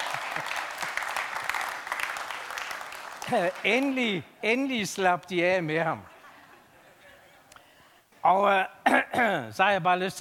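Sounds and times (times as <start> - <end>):
crowd applause: 0.0 - 4.0
speech: 3.3 - 6.1, 8.2 - 10.2.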